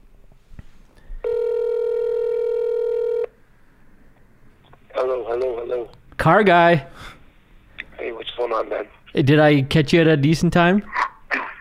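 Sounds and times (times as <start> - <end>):
loud steady electronic telephone dialing beep: 1.2 - 3.3
speech: 5.9 - 7.2, 8.5 - 11.0.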